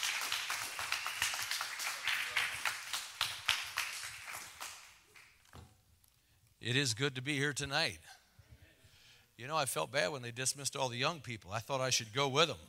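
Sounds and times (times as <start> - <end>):
church congregation clapping to welcome visiting missionaries: 0.0 - 5.5
speech: 6.6 - 8.2, 9.4 - 12.6.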